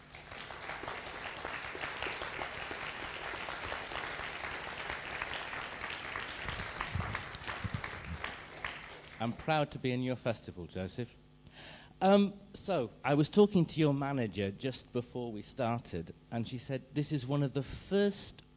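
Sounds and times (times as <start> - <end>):
audience applause: 0.0 - 9.4
speech: 9.2 - 11.2, 12.0 - 18.5.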